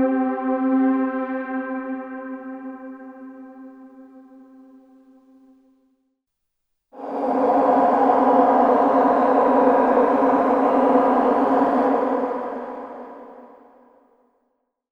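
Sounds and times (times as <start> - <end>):
live worship drones: 0.0 - 3.9, 7.0 - 13.9.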